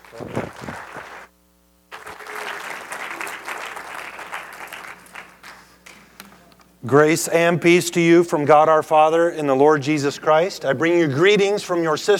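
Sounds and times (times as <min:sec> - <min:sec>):
audience applause welcoming a speaker in a church: 0:00.0 - 0:01.3, 0:01.9 - 0:06.0
speech: 0:00.1 - 0:00.4, 0:06.8 - 0:12.1.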